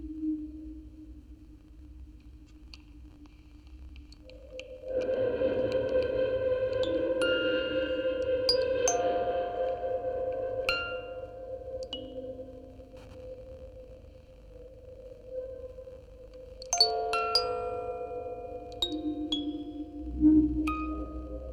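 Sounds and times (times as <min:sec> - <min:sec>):
quartet of music boxes playing: 0:05.0 - 0:13.0, 0:16.7 - 0:21.5.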